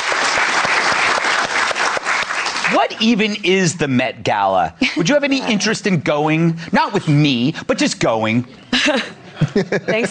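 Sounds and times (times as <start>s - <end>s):
applause of many hands clapping: 0.0s - 3.4s
speech: 2.7s - 10.0s
laughter: 4.8s - 6.0s, 8.6s - 10.0s.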